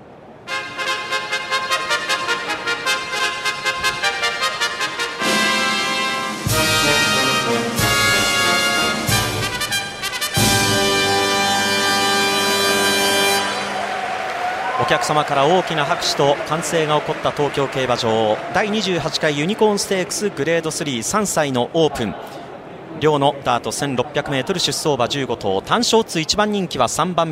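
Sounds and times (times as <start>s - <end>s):
horse race starting fanfare: 0.4s - 14.0s
speech: 14.9s - 22.4s, 23.0s - 27.2s.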